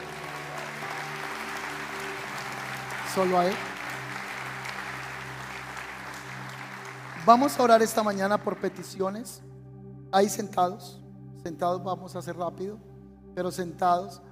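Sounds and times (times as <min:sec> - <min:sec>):
audience applause: 0:00.0 - 0:09.0
speech: 0:03.2 - 0:03.7, 0:07.2 - 0:09.5, 0:10.1 - 0:14.3.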